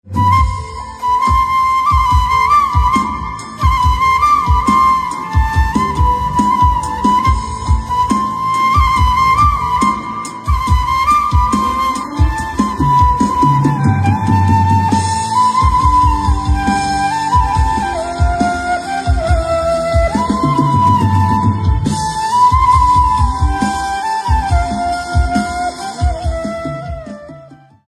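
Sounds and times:
instrumental flute ringtone: 0.0 - 27.8.

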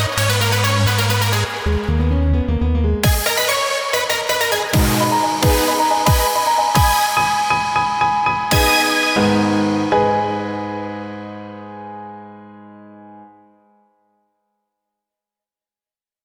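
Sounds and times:
remix music: 0.0 - 10.8.

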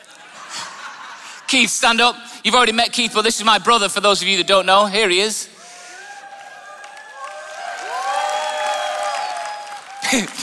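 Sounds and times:
laughter: 0.0 - 2.0, 9.9 - 10.4
speech: 1.5 - 5.6, 10.1 - 10.4
cheering voices and whoops: 5.6 - 10.4
room full of people clapping: 6.1 - 10.4.

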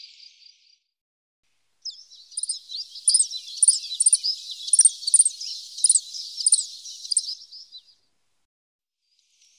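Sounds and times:
common chiffchaff Phylloscopus collybita song of high hooked notes: 1.9 - 7.8.

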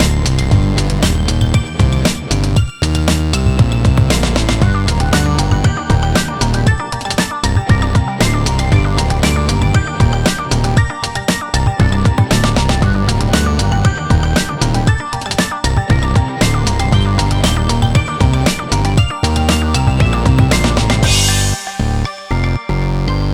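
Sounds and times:
funk indie game music: 0.0 - 23.3.

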